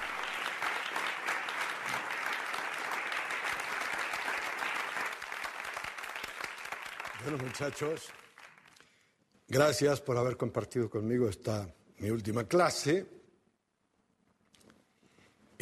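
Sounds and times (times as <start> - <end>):
students giving a standing ovation: 0.0 - 8.9
speech: 7.2 - 8.2, 9.5 - 13.2.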